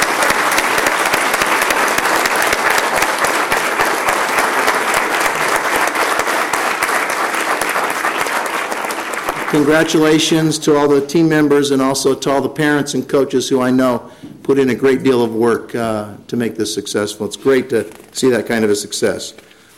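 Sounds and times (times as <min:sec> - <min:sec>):
audience applause: 0:00.0 - 0:10.3
speech: 0:09.5 - 0:19.7.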